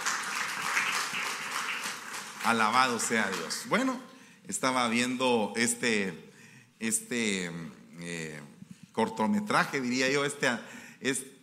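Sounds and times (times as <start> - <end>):
audience applause: 0.0 - 3.6
speech: 2.4 - 11.3.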